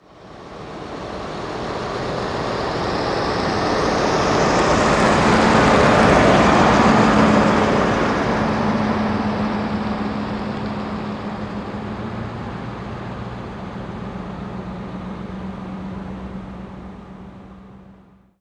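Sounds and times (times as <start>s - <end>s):
car: 0.0s - 18.3s.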